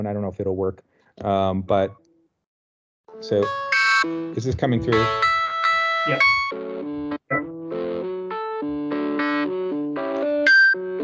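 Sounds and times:
speech: 0.0 - 2.0, 3.2 - 5.3, 6.0 - 6.8
jazzy electronic synth riff generated from molecular structure: 3.1 - 11.0.

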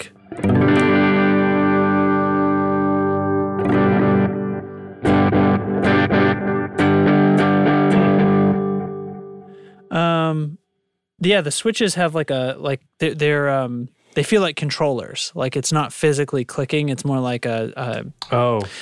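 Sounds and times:
overdriven electric guitar chords with delay echoes through an amp: 0.0 - 9.9
speech: 11.2 - 18.7.

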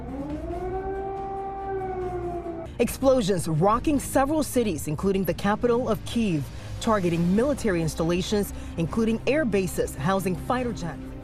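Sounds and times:
air raid siren wailing: 0.0 - 2.8
speech: 2.8 - 11.2.

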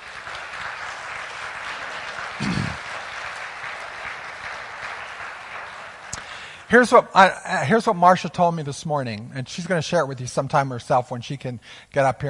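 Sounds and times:
church congregation applauding to welcome back a member: 0.0 - 7.0
speech: 6.7 - 12.2.

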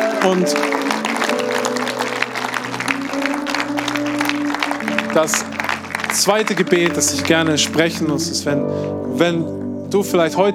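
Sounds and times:
audience applause: 0.0 - 8.2
speech: 0.2 - 0.8, 5.2 - 5.6, 6.2 - 10.5.

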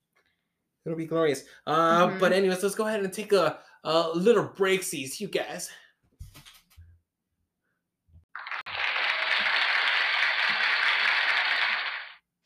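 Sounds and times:
speech: 0.8 - 5.8
applause: 8.3 - 12.3.

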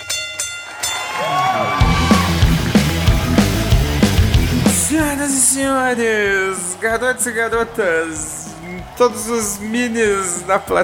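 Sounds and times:
wrestling ring bell clanging: 0.0 - 1.7
loud roaring crowd: 0.8 - 10.8
steady rhythmic thumping: 1.8 - 9.6
speech: 5.5 - 10.8.

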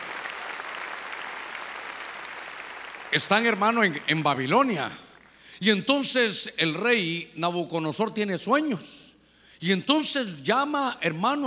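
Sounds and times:
crowd applauding: 0.0 - 5.0
speech: 3.1 - 5.0, 5.6 - 9.0, 9.6 - 11.4.

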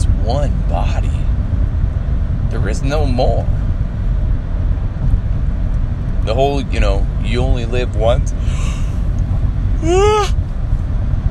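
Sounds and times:
low rumble: 0.0 - 11.2
speech: 0.3 - 0.8, 2.7 - 3.6, 6.3 - 8.8, 9.8 - 10.4
person yawning: 9.8 - 10.4.

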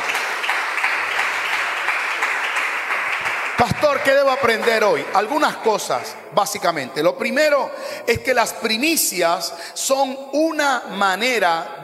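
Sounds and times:
audience applause: 0.0 - 5.4
speech: 3.6 - 11.8.

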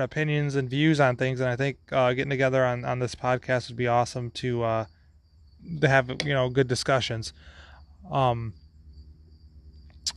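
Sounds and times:
speech: 0.0 - 5.0, 5.6 - 8.6
hornet or wasp buzzing: 4.9 - 6.5, 7.3 - 10.1.

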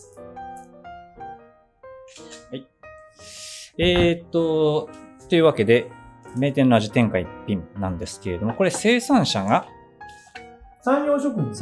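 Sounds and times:
camera shutter snap taking a photo: 2.1 - 2.4
speech: 2.5 - 2.8, 3.8 - 9.8, 10.8 - 11.6.

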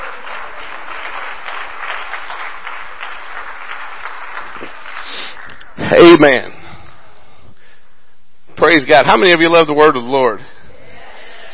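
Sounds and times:
audience clapping hands: 0.0 - 6.2
speech: 5.9 - 6.6, 8.7 - 10.5.

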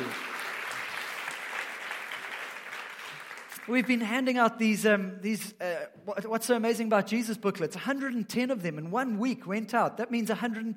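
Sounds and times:
audience applauding: 0.0 - 4.0
speech: 3.7 - 10.7.

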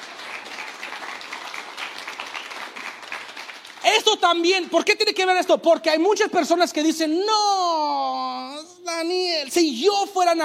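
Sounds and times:
audience applause: 0.0 - 4.1
speech: 3.9 - 8.2, 8.9 - 10.4.

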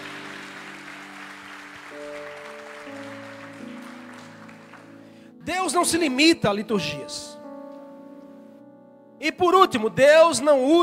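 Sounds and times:
audience applauding: 0.0 - 5.3
speech: 5.6 - 7.4, 9.3 - 10.8.

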